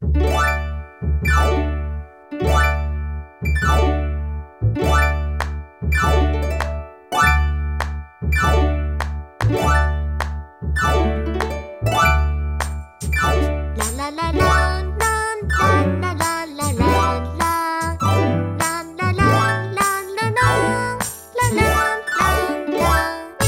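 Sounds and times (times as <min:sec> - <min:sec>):
harp performance: 0:00.0 - 0:23.4.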